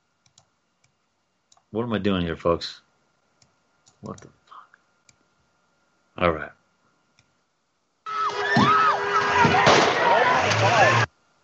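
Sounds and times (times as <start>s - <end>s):
speech: 1.7s - 2.8s, 4.0s - 4.4s, 6.2s - 6.6s
voices and commotion: 8.1s - 11.1s
gunshot: 9.4s - 10.0s.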